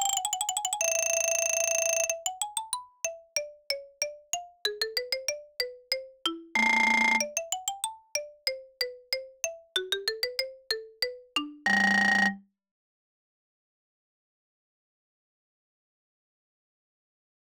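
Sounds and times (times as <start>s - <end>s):
mallet percussion etude: 0.0s - 12.4s.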